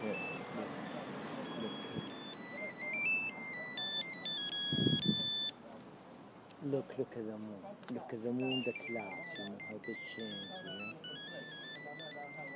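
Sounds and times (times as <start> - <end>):
phone ringtone: 0.0 - 5.6, 8.3 - 12.5
speech: 6.7 - 11.2.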